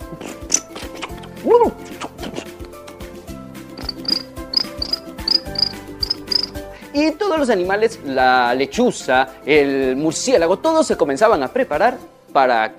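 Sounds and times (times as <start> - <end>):
speech: 1.4 - 1.8, 7.0 - 12.7
crickets chirping: 3.8 - 6.6.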